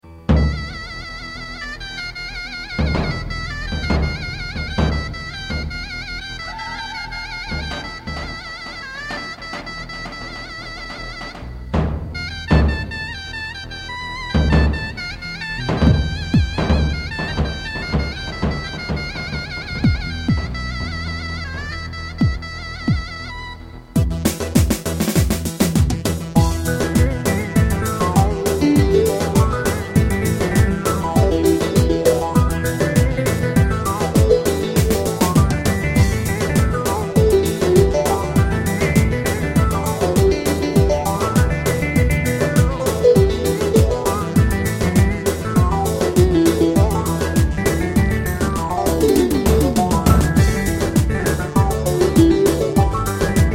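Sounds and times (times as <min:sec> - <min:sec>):
halay folk music: 0:00.0 - 0:53.5.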